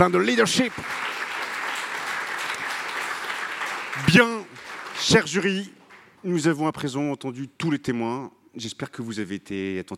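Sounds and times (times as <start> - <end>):
speech: 0.0 - 1.1, 4.0 - 9.9
audience applause: 0.1 - 6.1.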